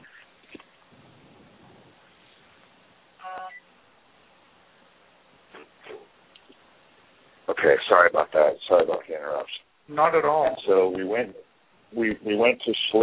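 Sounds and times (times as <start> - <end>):
quiet hiss: 0.0 - 13.0
phone keypad beeps while silencing incoming call: 3.2 - 3.6
speech: 7.6 - 13.0.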